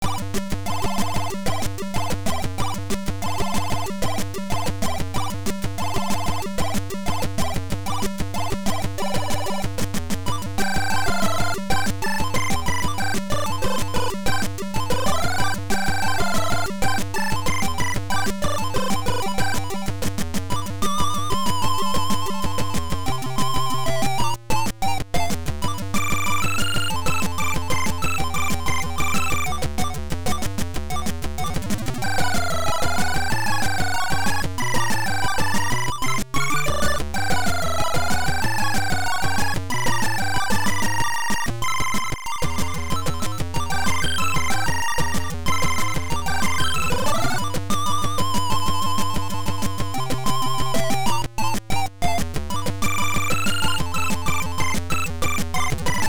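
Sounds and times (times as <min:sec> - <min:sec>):
AY beeper chiptune title music: 0:00.0 - 0:56.0.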